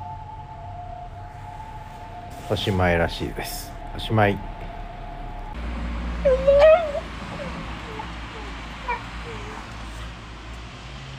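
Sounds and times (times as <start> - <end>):
speech: 2.5 - 4.6
dog whining bark: 6.2 - 10.1.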